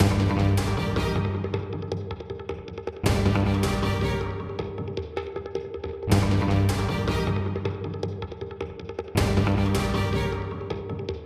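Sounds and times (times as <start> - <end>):
platforming game music: 0.0 - 2.1, 3.0 - 5.0, 6.1 - 8.2, 9.2 - 11.1.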